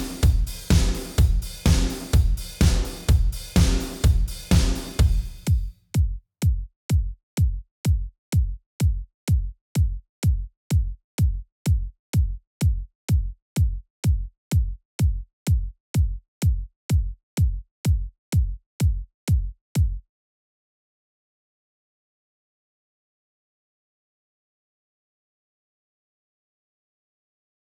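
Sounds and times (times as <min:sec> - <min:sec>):
drums stem: 0:00.0 - 0:19.4.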